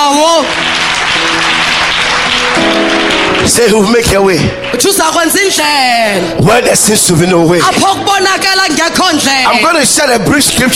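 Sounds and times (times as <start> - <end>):
church congregation clapping in praise: 0.0 - 5.9
speech: 0.2 - 0.7, 3.4 - 10.7.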